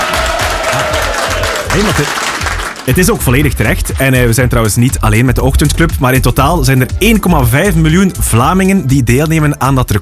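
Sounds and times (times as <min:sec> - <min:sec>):
small applause: 0:00.0 - 0:03.0
speech: 0:01.8 - 0:02.3, 0:02.9 - 0:09.9.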